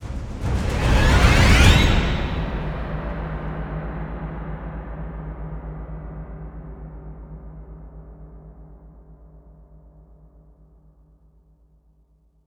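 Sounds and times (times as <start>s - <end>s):
combat start music stinger: 0.1s - 3.4s.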